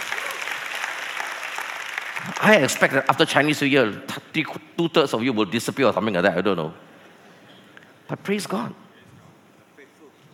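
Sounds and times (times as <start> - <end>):
crowd of people clapping: 0.0 - 3.3
speech: 2.2 - 6.9, 8.1 - 8.8.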